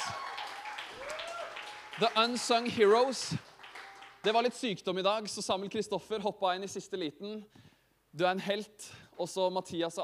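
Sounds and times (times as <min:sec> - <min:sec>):
audience applause and cheering: 0:00.0 - 0:04.6
speech: 0:02.0 - 0:03.5, 0:04.2 - 0:10.0.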